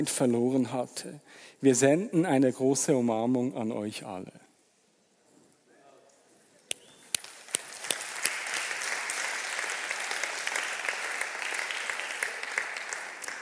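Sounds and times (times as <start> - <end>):
speech: 0.0 - 4.4
applause: 7.0 - 13.3.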